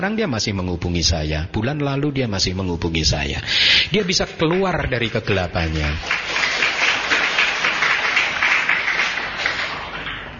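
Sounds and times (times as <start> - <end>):
speech: 0.0 - 6.4
audience clapping: 4.5 - 10.3.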